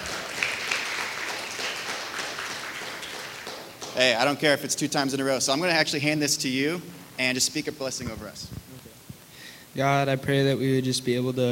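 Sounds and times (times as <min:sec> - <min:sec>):
crowd applause: 0:00.0 - 0:04.4
speech: 0:04.0 - 0:08.6, 0:09.8 - 0:11.5.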